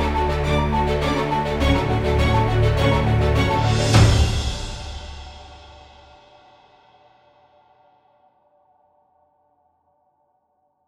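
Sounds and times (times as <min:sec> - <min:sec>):
ominous horror background music: 0:00.0 - 0:06.6.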